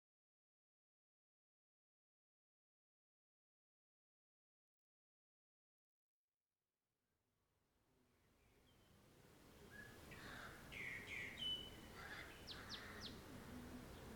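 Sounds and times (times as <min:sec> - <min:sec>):
bird song chirps in the morning: 0:09.7 - 0:13.2.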